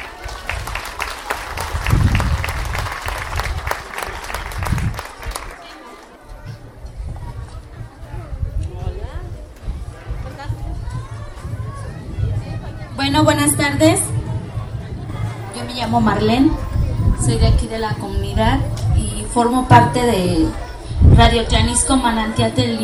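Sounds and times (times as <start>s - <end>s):
audience applause: 0.0s - 6.2s
low murmur of crowd chatter and voices: 0.0s - 22.8s
speech: 13.2s - 14.1s, 15.9s - 18.8s, 19.4s - 20.6s, 21.2s - 22.8s.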